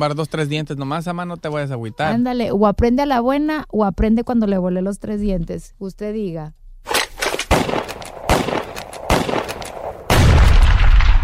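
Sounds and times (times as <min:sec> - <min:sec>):
speech: 0:00.0 - 0:06.6
gunfire sound effect: 0:06.9 - 0:11.2
heavier sustained rumbling blast: 0:07.5 - 0:11.2.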